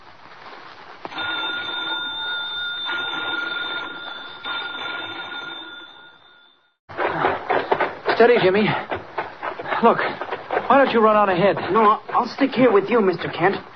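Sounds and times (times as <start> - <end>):
bell ringing: 1.1 - 6.8
speech: 8.2 - 8.9, 9.8 - 13.7.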